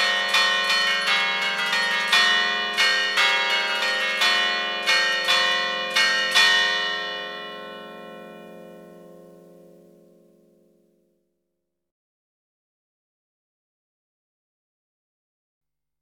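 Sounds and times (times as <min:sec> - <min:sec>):
five bells ringing a mazurka in Bergamo: 0:00.0 - 0:10.3.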